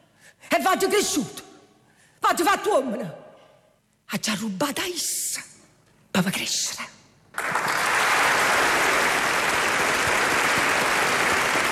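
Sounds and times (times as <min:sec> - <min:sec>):
speech: 0:00.6 - 0:01.4, 0:02.2 - 0:03.2, 0:04.1 - 0:05.6, 0:06.2 - 0:07.5
applause: 0:07.3 - 0:11.7.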